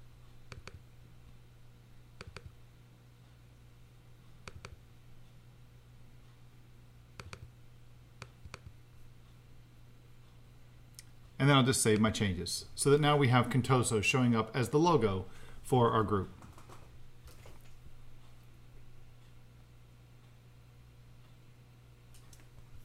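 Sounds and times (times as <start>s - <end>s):
mouse clicks while picking a file on a computer: 0.5s - 0.8s, 2.2s - 2.6s, 4.4s - 4.8s, 7.2s - 7.5s, 8.2s - 8.8s
speech: 11.4s - 16.4s.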